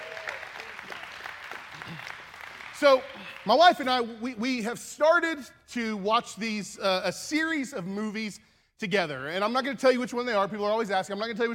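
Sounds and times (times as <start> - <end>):
audience round of applause: 0.0 - 3.9
speech: 2.8 - 11.5.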